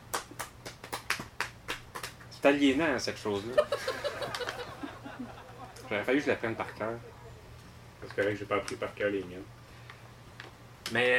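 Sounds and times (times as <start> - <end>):
handclaps: 0.0 - 2.6, 4.2 - 6.0, 10.8 - 11.1
speech: 2.4 - 4.2, 5.9 - 7.2, 8.0 - 9.6, 10.9 - 11.1
laughter: 3.4 - 7.5.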